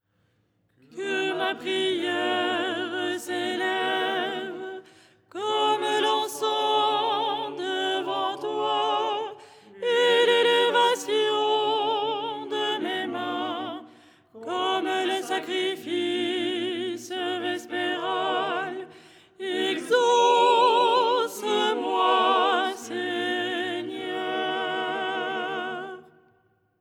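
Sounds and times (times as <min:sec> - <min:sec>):
soprano singing: 0:00.9 - 0:26.2.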